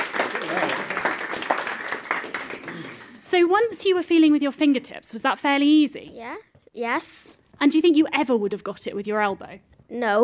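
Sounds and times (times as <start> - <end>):
audience applause: 0.0 - 3.2
speech: 3.3 - 10.2.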